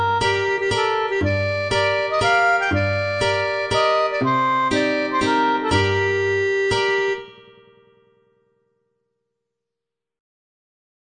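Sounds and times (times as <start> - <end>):
mazurka: 0.0 - 7.9.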